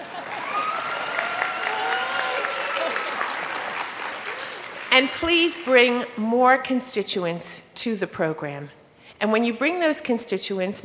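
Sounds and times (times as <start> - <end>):
audience applause: 0.0 - 4.9
speech: 5.0 - 10.8.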